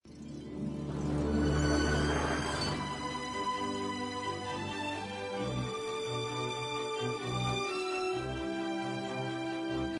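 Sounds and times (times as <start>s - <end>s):
romantic telenovela music: 0.1s - 9.9s.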